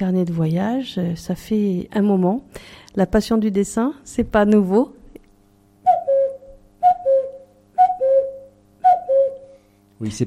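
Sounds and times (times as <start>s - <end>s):
speech: 0.0s - 5.0s, 10.0s - 10.2s
whistled imitation of a cuckoo call: 5.8s - 9.7s.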